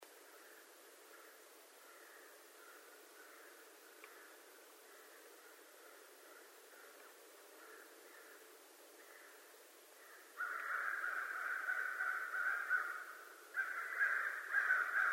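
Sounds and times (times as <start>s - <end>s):
American crow giving harsh raspy caws: 0.3s - 9.4s, 10.0s - 15.1s.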